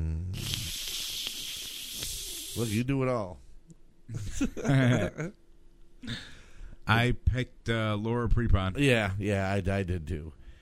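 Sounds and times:
bacon sizzling: 0:00.4 - 0:02.8
speech: 0:02.6 - 0:03.4, 0:04.1 - 0:05.4, 0:06.0 - 0:06.3, 0:06.9 - 0:10.4.

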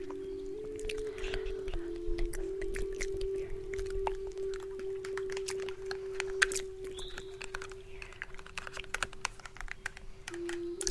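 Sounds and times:
native flute holding a long low note: 0:00.0 - 0:08.0
dry clicks and taps: 0:04.9 - 0:10.8.

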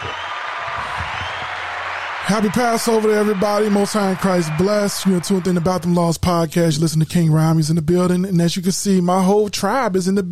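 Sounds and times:
applause: 0:00.0 - 0:05.9
speech: 0:02.3 - 0:10.3.

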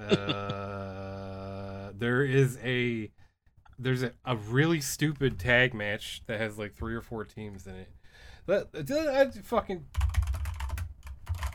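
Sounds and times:
speech: 0:00.1 - 0:00.6, 0:02.0 - 0:03.2, 0:03.8 - 0:10.0
fingers typing on a computer keyboard: 0:09.9 - 0:11.5.

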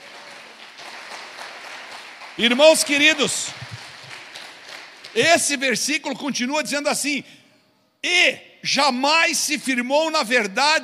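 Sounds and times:
audience applause: 0:00.0 - 0:05.3
speech: 0:02.4 - 0:03.7, 0:05.2 - 0:07.4, 0:08.0 - 0:10.8.

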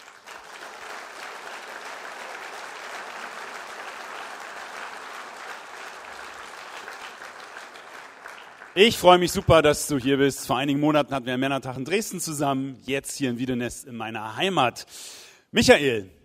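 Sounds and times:
roaring audience applause: 0:00.0 - 0:09.8
speech: 0:08.8 - 0:16.2.

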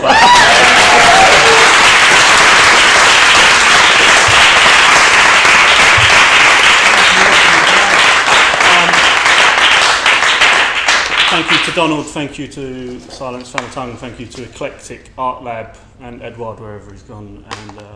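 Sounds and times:
audience applause: 0:00.0 - 0:11.8
speech: 0:11.8 - 0:17.9.

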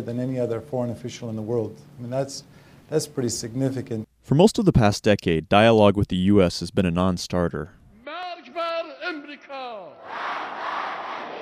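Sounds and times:
speech: 0:00.0 - 0:07.8
crowd chanting at a 2007 Ahmadinejad rally: 0:08.2 - 0:11.4.

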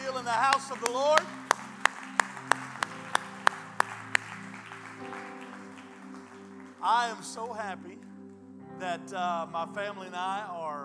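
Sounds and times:
audience clapping hands: 0:00.0 - 0:07.5
speech: 0:00.3 - 0:01.5, 0:06.8 - 0:08.1, 0:08.8 - 0:10.8.

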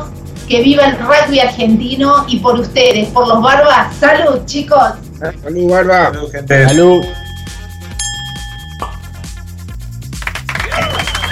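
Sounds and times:
speech: 0:00.5 - 0:07.2
applause: 0:10.0 - 0:11.3
crowd ovation: 0:10.2 - 0:11.3.

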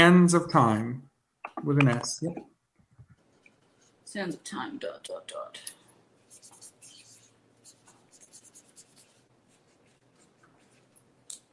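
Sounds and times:
speech: 0:00.0 - 0:02.5, 0:04.1 - 0:05.8
pen signing an autograph on a photo: 0:06.2 - 0:11.5.

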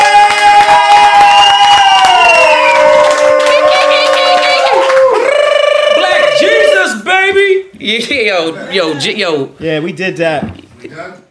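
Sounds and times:
applause for a guest: 0:00.0 - 0:06.0
people cheering and whooping: 0:00.0 - 0:07.1
speech: 0:07.9 - 0:10.5.

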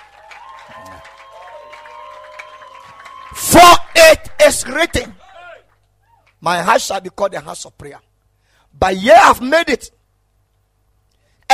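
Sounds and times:
audience clapping hands: 0:00.0 - 0:06.4
speech: 0:03.3 - 0:05.2, 0:06.4 - 0:08.1, 0:08.7 - 0:10.0.

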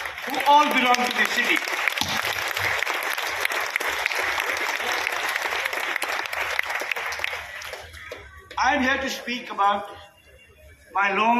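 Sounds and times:
audience applause: 0:00.0 - 0:08.5
speech: 0:00.2 - 0:02.2, 0:08.7 - 0:10.0, 0:11.0 - 0:11.3.

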